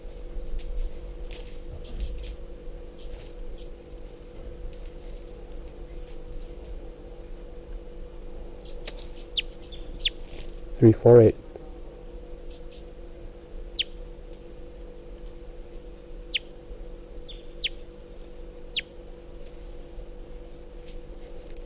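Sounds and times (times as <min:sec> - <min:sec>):
low steady hum: 0:00.0 - 0:21.6
weak calls of a wild bird: 0:08.6 - 0:10.2, 0:13.7 - 0:14.0, 0:16.2 - 0:16.5, 0:17.2 - 0:17.8, 0:18.7 - 0:18.9
speech: 0:10.8 - 0:11.4.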